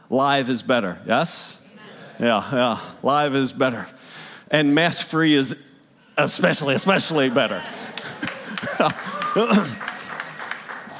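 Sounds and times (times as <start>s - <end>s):
speech: 0.1s - 1.6s, 2.2s - 9.9s
laughter: 6.8s - 10.9s
audience clapping: 7.7s - 10.9s.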